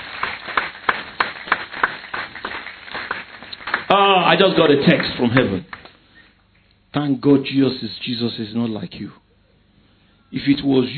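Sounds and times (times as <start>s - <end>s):
audience clapping in a steady quick rhythm: 0.0s - 6.0s
speech: 3.9s - 5.8s, 6.9s - 9.2s, 10.3s - 10.9s.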